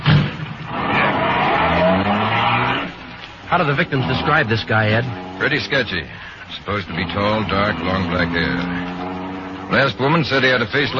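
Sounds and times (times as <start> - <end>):
car engine roaring: 0.0 - 10.9
car tires squealing: 0.0 - 10.9
speech: 3.5 - 8.9, 9.7 - 10.9.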